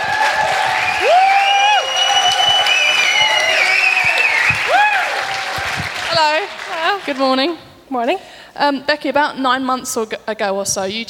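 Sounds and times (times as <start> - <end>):
high rising-and-falling whoops: 0.0 - 5.8
audience applause welcoming a guest: 0.0 - 7.5
speech: 7.0 - 11.0.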